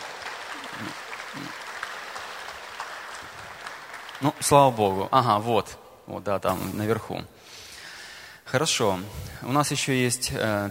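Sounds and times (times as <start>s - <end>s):
audience clapping in a church hall: 0.0s - 5.5s
speech: 4.2s - 7.6s, 8.5s - 10.6s.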